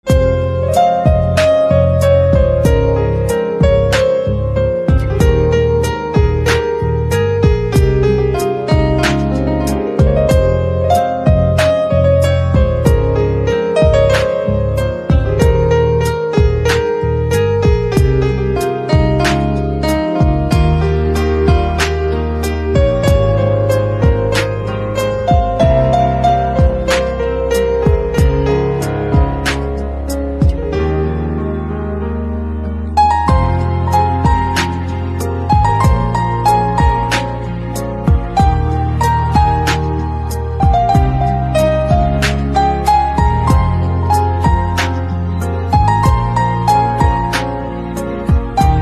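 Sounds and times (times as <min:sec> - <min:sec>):
instrumental piano ringtone: 0:00.0 - 0:48.8.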